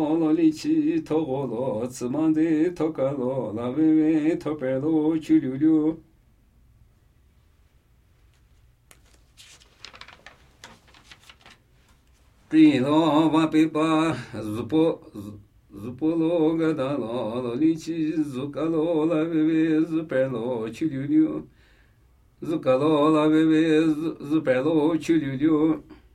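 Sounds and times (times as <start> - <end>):
Namuyi Tibetan ritual chanting: 0.0 - 6.1, 12.5 - 21.5, 22.4 - 26.0.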